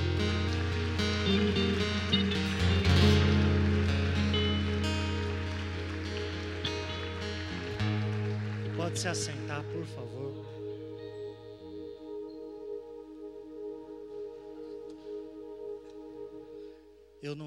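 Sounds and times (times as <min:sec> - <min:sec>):
audience applause: 0:00.0 - 0:10.4
speech: 0:09.0 - 0:10.6, 0:17.2 - 0:17.4.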